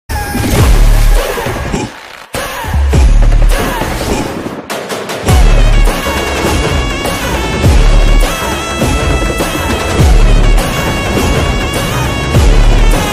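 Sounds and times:
movie theater background music ringtone: 0:00.1 - 0:13.1.

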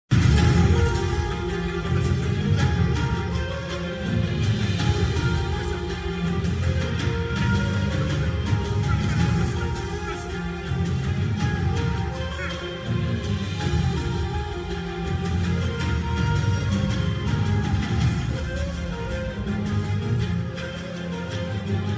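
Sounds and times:
interval background music for mass: 0:00.1 - 0:21.9.

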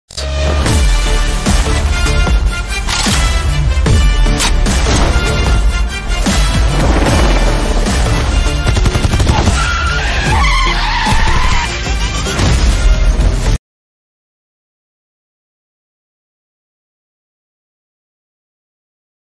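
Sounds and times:
Tamil trailer music ringtone: 0:00.1 - 0:13.6.

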